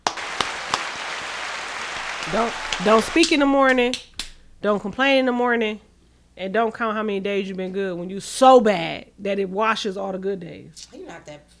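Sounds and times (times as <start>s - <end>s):
clapping: 0.0s - 4.4s
speech: 2.3s - 11.5s.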